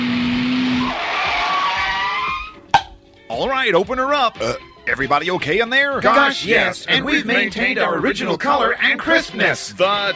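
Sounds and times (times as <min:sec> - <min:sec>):
car skidding with tire squeal: 0:00.5 - 0:02.9
speech: 0:03.4 - 0:10.1.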